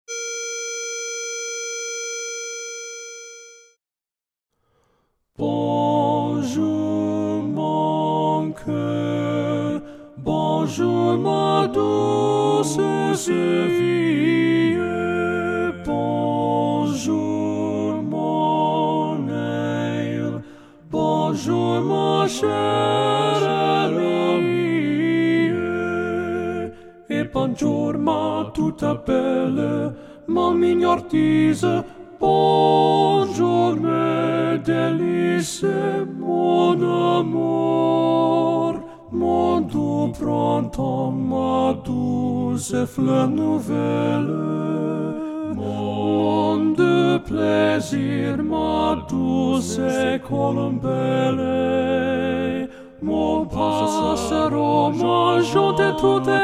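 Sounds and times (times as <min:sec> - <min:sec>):
tenor singing: 0:05.4 - 0:56.4.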